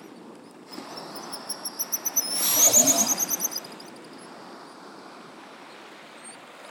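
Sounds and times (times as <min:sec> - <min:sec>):
Pigeon guillemot Cepphus columba squealing trill: 0:00.8 - 0:04.2.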